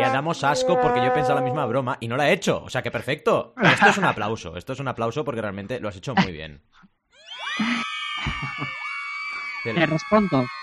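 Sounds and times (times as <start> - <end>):
speech: 0.0 - 7.0, 9.6 - 10.6
laughter: 3.6 - 4.2, 7.6 - 9.0
crowd of fans shrieking and screaming sound effect: 7.2 - 10.6.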